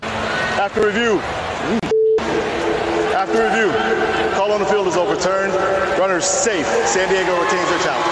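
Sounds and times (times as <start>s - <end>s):
speech: 0.6s - 1.8s, 3.2s - 8.1s
censor beep over umpire's curse: 1.7s - 4.4s.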